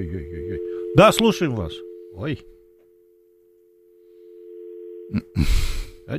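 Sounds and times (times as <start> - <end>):
telephone dial tone: 0.0 - 2.3, 4.2 - 5.1
speech: 0.0 - 2.6, 5.1 - 6.1.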